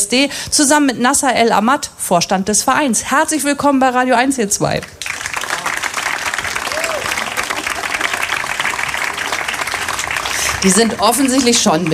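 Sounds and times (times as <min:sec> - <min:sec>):
speech: 0:00.1 - 0:05.1, 0:10.6 - 0:11.9
roaring applause from a radio studio audience: 0:05.0 - 0:11.9.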